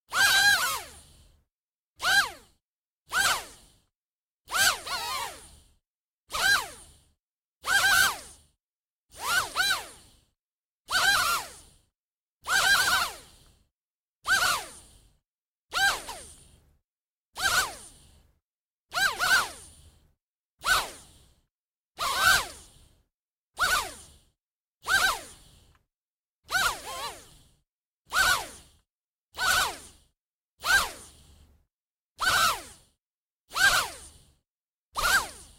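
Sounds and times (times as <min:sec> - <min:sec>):
quadcopter drone: 0:00.1 - 0:01.0, 0:02.0 - 0:02.5, 0:03.1 - 0:03.6, 0:04.5 - 0:05.6, 0:06.3 - 0:06.9, 0:07.7 - 0:08.4, 0:09.1 - 0:10.0, 0:10.9 - 0:11.7, 0:12.5 - 0:13.3, 0:14.2 - 0:14.9, 0:15.7 - 0:16.4, 0:17.4 - 0:18.0, 0:18.9 - 0:19.7, 0:22.0 - 0:22.7, 0:23.6 - 0:24.1, 0:24.8 - 0:25.4, 0:26.5 - 0:27.4, 0:28.1 - 0:28.7, 0:29.4 - 0:30.0, 0:30.6 - 0:31.0, 0:32.2 - 0:32.8, 0:33.5 - 0:34.2, 0:35.0 - 0:35.5.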